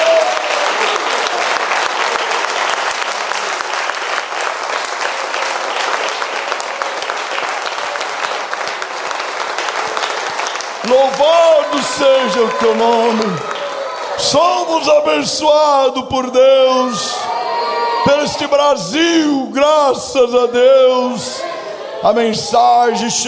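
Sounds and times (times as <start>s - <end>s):
applause at a religious worship gathering: 0.0s - 15.5s
speech: 12.0s - 13.4s, 14.2s - 17.3s, 18.0s - 23.2s.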